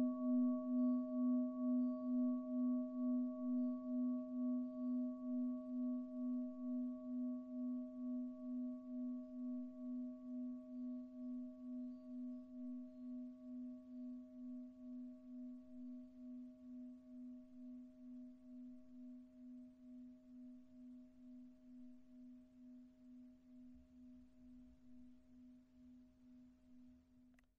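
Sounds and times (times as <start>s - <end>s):
titanium singing bowl: 0.0s - 21.4s.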